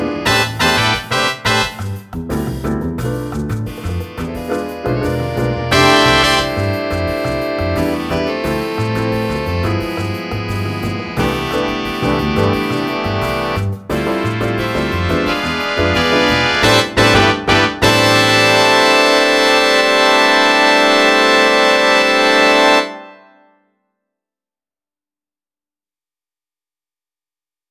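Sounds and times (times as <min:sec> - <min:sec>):
trumpet: 0:00.0 - 0:02.2, 0:03.7 - 0:23.6
Latin jazz band: 0:00.0 - 0:23.0.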